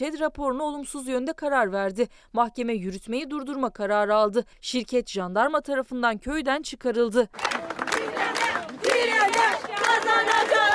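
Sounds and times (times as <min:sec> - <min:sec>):
speech: 0:00.0 - 0:07.9
villagers cheering in the village square celebrating a court ruling: 0:07.4 - 0:10.7.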